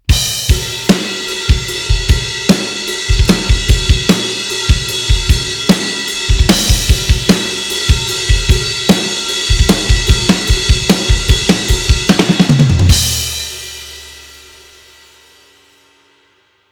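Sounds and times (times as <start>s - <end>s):
groove music: 0.0s - 13.4s.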